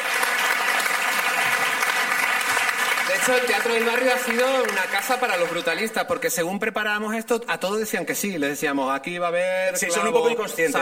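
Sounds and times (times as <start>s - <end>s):
audience applause for the Teatro del Barrio: 0.0s - 6.2s
speech: 3.1s - 10.8s.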